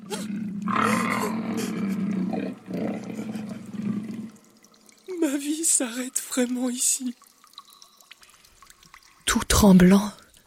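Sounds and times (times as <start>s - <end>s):
lion roaring: 0.0s - 4.4s
speech: 5.8s - 7.3s, 9.6s - 10.2s.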